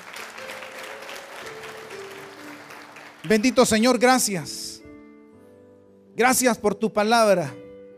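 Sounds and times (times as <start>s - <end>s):
audience applause: 0.0s - 4.3s
speech: 3.2s - 4.6s, 6.2s - 7.6s.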